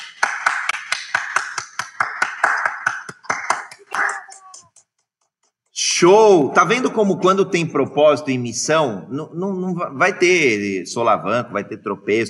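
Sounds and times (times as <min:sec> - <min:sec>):
hand clapping: 0:00.0 - 0:05.8
speech: 0:06.0 - 0:12.2.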